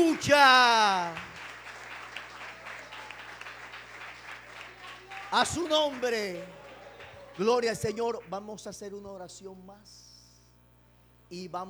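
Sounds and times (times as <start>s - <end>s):
speech: 0.0s - 1.3s, 5.3s - 6.6s, 7.4s - 10.1s, 11.3s - 11.6s
audience applause: 0.0s - 8.5s.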